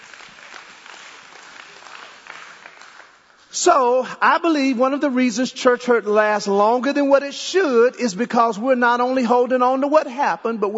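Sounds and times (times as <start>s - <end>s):
audience applause: 0.0s - 3.5s
speech: 3.6s - 10.7s.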